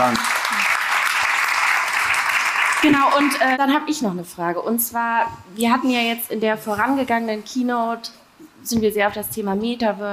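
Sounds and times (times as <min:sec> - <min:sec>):
speech: 0:00.0 - 0:00.3, 0:02.8 - 0:10.1
sustained audience applause of many hands clapping: 0:00.0 - 0:03.6.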